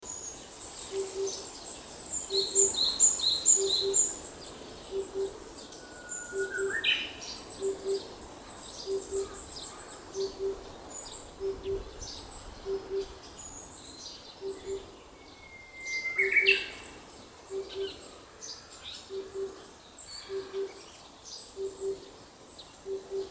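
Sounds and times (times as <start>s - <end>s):
Oriental cuckoo calling: 0.9s - 1.5s, 2.3s - 8.2s, 8.8s - 10.7s, 12.6s - 13.2s, 14.4s - 18.1s, 19.0s - 20.9s, 21.6s - 22.1s, 22.8s - 23.3s.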